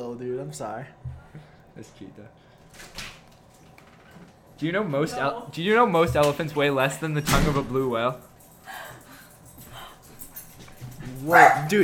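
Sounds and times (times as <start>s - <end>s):
speech: 0.2s - 3.0s, 4.6s - 8.8s, 11.2s - 11.8s
dog barking: 11.2s - 11.8s.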